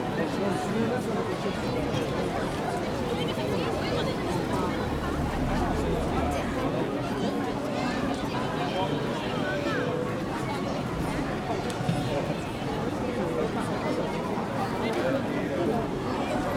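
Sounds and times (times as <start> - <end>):
city walla ambience: 0.0 - 16.5.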